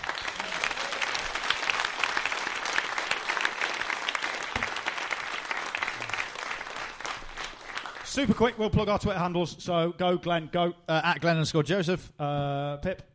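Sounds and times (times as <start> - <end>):
round of applause: 0.0 - 8.5
speech: 8.2 - 13.1.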